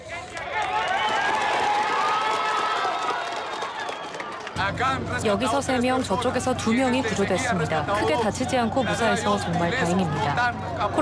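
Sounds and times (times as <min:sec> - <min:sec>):
applause and cheering: 0:00.0 - 0:05.2
speech: 0:04.6 - 0:10.9.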